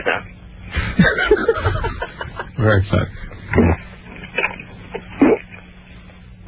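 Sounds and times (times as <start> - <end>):
laughter: 0.7 - 3.8
speech: 2.6 - 3.8
throaty gulping and swallowing in attempted burp: 3.0 - 5.6.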